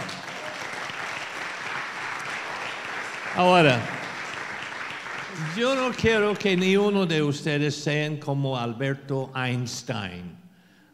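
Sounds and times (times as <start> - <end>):
audience applause: 0.0 - 7.0
speech: 3.4 - 4.0, 5.6 - 10.4.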